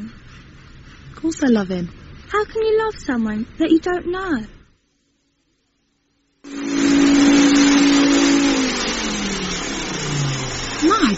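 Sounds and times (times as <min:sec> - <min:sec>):
speech: 0:01.2 - 0:04.6
vacuum cleaner running: 0:06.5 - 0:11.1.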